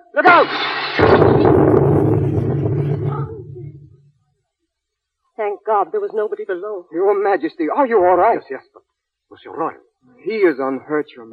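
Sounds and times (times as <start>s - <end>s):
speech: 0.2s - 1.1s, 5.4s - 11.3s
bomb explosion: 0.4s - 4.0s.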